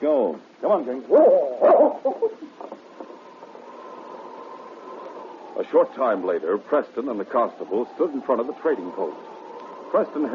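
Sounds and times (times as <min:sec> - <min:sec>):
speech: 0:00.3 - 0:02.5, 0:05.7 - 0:09.3, 0:09.9 - 0:10.3
dog barking: 0:01.1 - 0:02.3.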